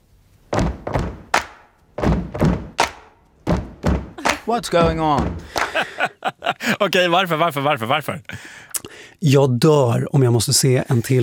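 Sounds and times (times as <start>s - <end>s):
group stamping feet to a beat: 0.4s - 6.1s
laughter: 4.2s - 7.0s
speech: 4.5s - 11.2s.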